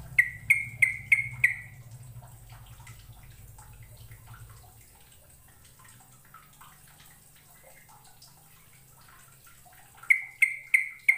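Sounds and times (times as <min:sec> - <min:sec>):
faint low hum: 0:00.0 - 0:11.1
bird sharp whistled calls: 0:00.2 - 0:01.8, 0:10.1 - 0:11.1.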